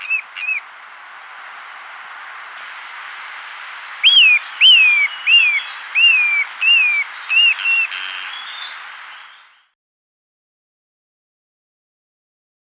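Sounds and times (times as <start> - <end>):
Pale-edged Flycatcher calling in South America: 0.0 - 9.6.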